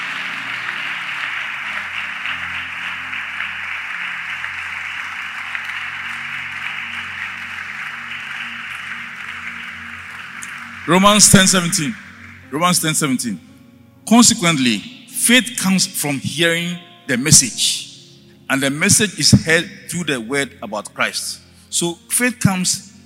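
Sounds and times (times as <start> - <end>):
audience clapping: 0.0 - 12.5
speech: 10.9 - 13.5, 14.1 - 17.9, 18.5 - 22.8.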